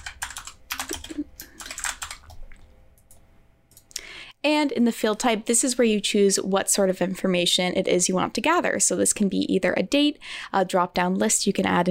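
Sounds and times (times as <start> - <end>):
keystrokes on a computer keyboard typing a field label: 0.0 - 3.9
speech: 4.4 - 11.9.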